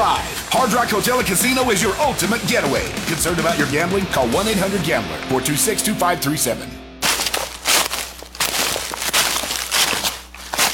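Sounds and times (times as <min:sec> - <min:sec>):
speech: 0:00.5 - 0:06.9
footsteps crunching through dry leaves: 0:07.0 - 0:10.7.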